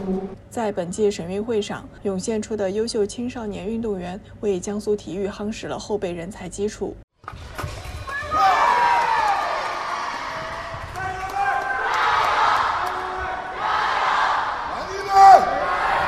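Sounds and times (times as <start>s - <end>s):
speech: 0.0s - 7.6s
audience cheering at a fencing match: 8.1s - 16.0s
fencers shouting at a fencing match: 11.0s - 16.0s.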